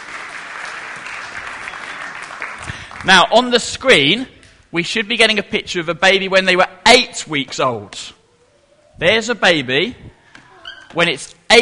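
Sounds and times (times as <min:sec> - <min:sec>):
audience applause for two guests: 0:00.0 - 0:03.4
speech: 0:03.0 - 0:08.2, 0:09.0 - 0:10.2, 0:10.9 - 0:11.6.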